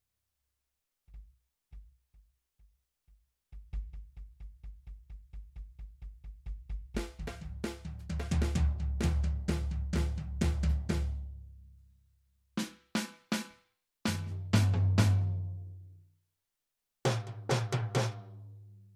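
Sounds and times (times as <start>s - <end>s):
drum: 3.6s - 11.3s, 12.6s - 15.6s, 17.1s - 18.4s.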